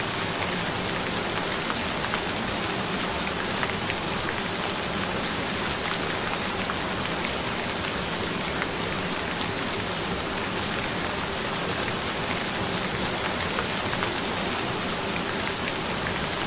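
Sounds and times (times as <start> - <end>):
rain: 0.0 - 16.4.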